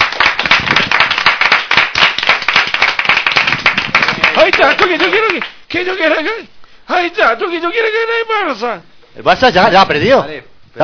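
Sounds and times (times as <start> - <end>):
applause: 0.0 - 5.6
speech: 5.8 - 10.8.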